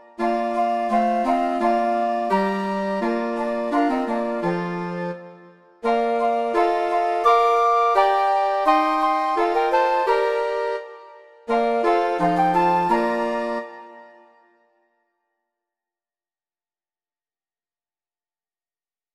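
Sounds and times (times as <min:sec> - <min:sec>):
two flutes: 0:00.0 - 0:15.0.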